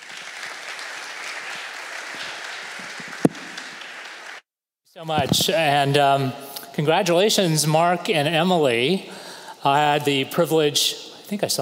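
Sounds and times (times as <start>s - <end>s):
audience applause welcoming a speaker: 0.0s - 4.4s
speech: 5.0s - 11.6s.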